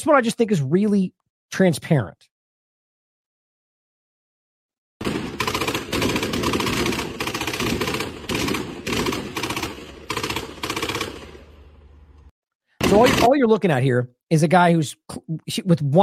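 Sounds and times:
speech: 0.0 - 2.3, 12.9 - 16.0
automatic gunfire from a man shooting one-handed at a building: 5.0 - 11.6, 12.8 - 13.4.

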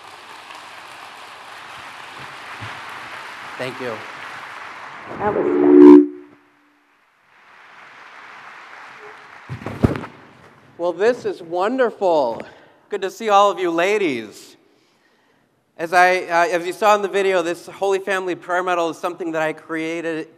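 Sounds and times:
audience applause: 0.0 - 5.3, 7.3 - 9.6
speech: 3.6 - 4.1, 5.1 - 6.0, 10.8 - 14.5, 15.8 - 20.3.

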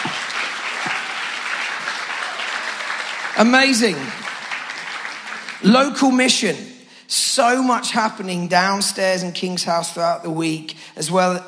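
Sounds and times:
audience applauding: 0.0 - 6.4
speech: 3.4 - 4.2, 5.6 - 11.4.

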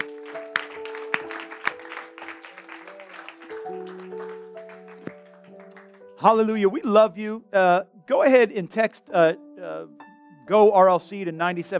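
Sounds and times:
audience clapping: 0.0 - 6.2
speech: 6.2 - 11.7.

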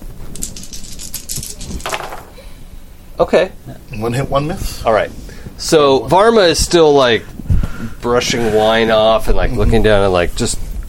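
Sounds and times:
dice rattling across a hard surface: 0.3 - 2.4
speech: 3.2 - 7.3, 8.0 - 10.8.

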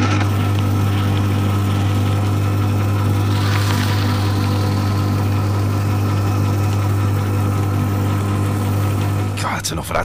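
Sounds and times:
paper shredder running: 0.0 - 9.4
speech: 9.6 - 10.0.

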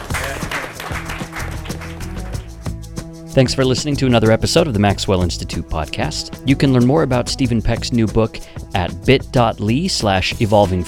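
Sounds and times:
audience applause and cheering: 0.0 - 2.6
speech: 3.4 - 10.8.

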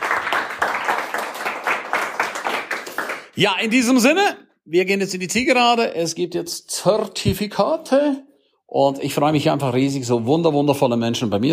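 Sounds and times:
audience applause: 0.0 - 3.4
speech: 3.4 - 11.5.

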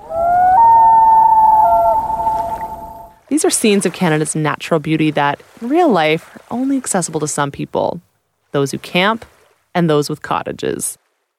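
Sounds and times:
loon wailing call: 0.0 - 3.2
speech: 3.4 - 11.0.

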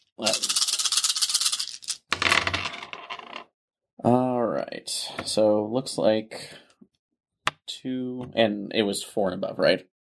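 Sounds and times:
speech: 0.2 - 0.5, 4.8 - 6.6, 7.8 - 9.9
dice rattling and tumbling: 0.2 - 3.4.

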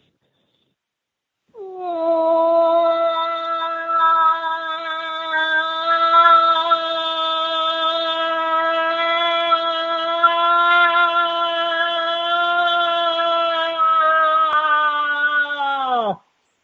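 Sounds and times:
person imitating a cow call: 1.6 - 16.2.

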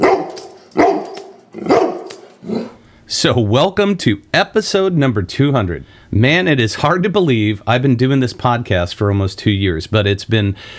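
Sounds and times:
dog barking: 0.0 - 2.8
speech: 3.2 - 10.7.

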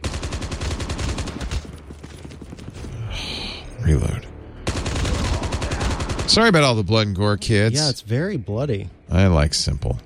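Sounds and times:
rapid automatic gunfire in the Call of Duty Mobile advanced fire tutorial: 0.0 - 2.9, 4.6 - 6.6
speech: 3.9 - 4.2, 6.3 - 10.0.

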